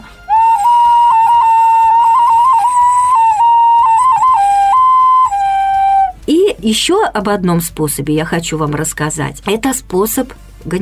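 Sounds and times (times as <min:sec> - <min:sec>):
clay folk whistle being blown: 0:00.0 - 0:06.2
speech: 0:06.6 - 0:10.8.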